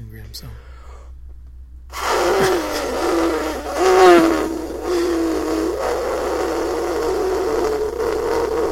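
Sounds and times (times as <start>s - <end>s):
person imitating an elephant trumpeting: 1.9s - 8.7s.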